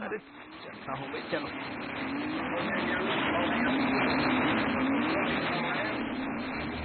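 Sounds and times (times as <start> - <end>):
motor scooter riding: 0.0 - 6.8
speech: 0.1 - 6.8.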